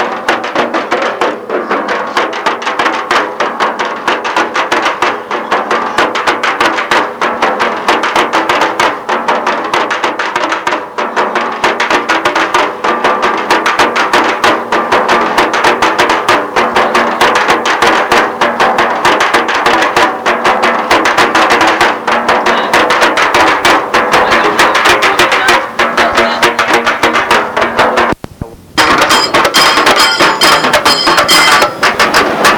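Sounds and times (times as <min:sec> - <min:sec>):
Malbar drums playing during Diwali at Saint-André in Réunion: 0:00.0 - 0:32.5.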